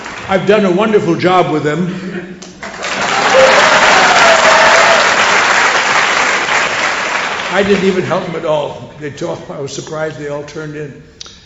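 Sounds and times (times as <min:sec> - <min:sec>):
audience clapping: 0:00.0 - 0:00.6, 0:02.4 - 0:08.4
speech: 0:00.3 - 0:02.5, 0:07.6 - 0:11.2.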